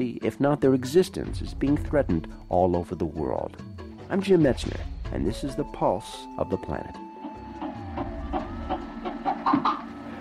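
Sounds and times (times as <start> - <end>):
speech: 0.0 - 7.0
red-footed tortoise clucking: 7.2 - 10.2.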